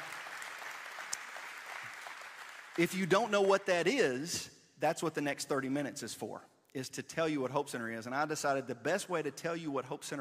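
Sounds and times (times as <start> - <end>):
faint audience applause: 0.0 - 3.3
speech: 2.8 - 10.1.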